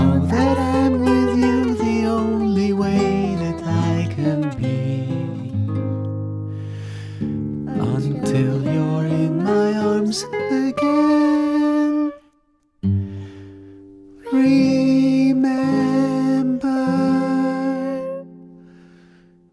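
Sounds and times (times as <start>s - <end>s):
lullaby music: 0.0s - 6.2s, 7.6s - 12.3s, 14.2s - 18.3s.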